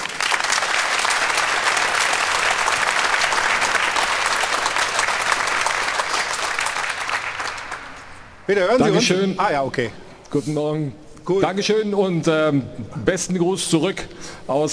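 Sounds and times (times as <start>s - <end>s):
audience applause: 0.0s - 8.3s
speech: 8.5s - 14.7s.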